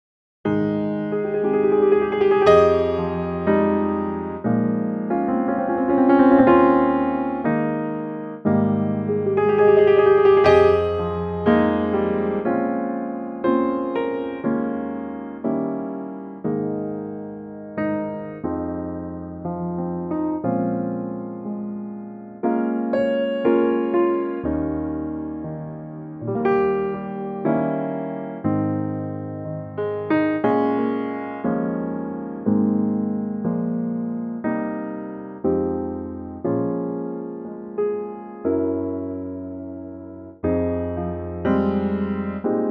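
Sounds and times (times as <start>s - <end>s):
piano note A flat: 0.5s - 42.6s.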